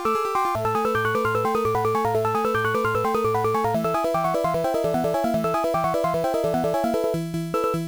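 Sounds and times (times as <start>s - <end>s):
in-game music: 0.2s - 7.8s.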